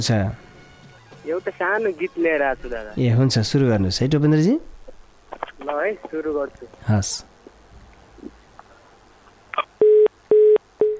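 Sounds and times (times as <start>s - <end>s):
speech: 0.0s - 0.4s, 1.2s - 4.7s, 5.3s - 7.3s
telephone line beeps as call cuts off: 9.8s - 10.9s.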